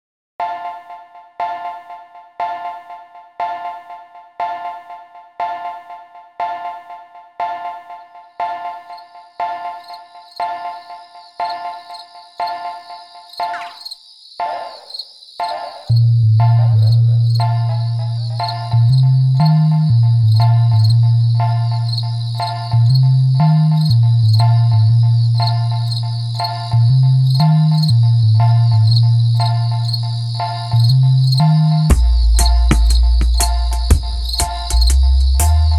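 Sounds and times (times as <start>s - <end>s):
crickets: 8.6s - 35.7s
dub music: 15.5s - 21.7s, 30.8s - 35.7s.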